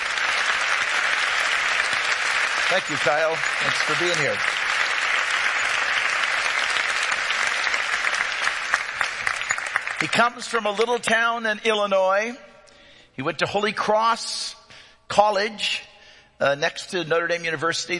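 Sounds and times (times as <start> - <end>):
audience applause: 0.0 - 10.4
speech: 2.7 - 4.5, 10.0 - 12.5, 13.2 - 17.9.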